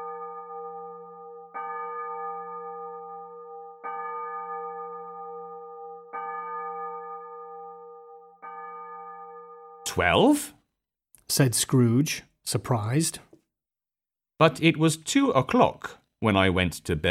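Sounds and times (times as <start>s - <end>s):
church clock bell striking twelve: 0.0s - 10.2s
speech: 9.9s - 10.6s, 11.3s - 13.3s, 14.4s - 17.0s.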